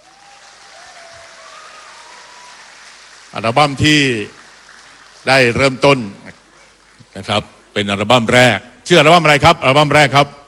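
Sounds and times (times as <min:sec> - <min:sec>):
crowd applauding: 0:00.0 - 0:07.7
speech: 0:03.3 - 0:04.4, 0:05.2 - 0:06.4, 0:07.2 - 0:10.4.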